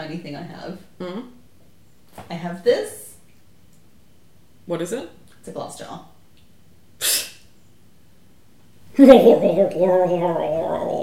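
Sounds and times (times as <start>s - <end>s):
speech: 0.1s - 1.4s, 2.2s - 3.0s, 4.7s - 6.1s, 7.0s - 7.2s, 9.0s - 11.0s
person imitating a frog croak: 9.0s - 11.0s.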